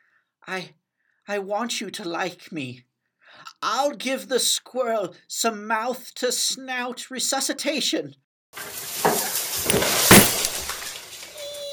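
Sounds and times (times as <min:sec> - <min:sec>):
speech: 0:00.5 - 0:08.8
bottle breaking: 0:08.9 - 0:11.2
tree knocked over: 0:09.0 - 0:11.2.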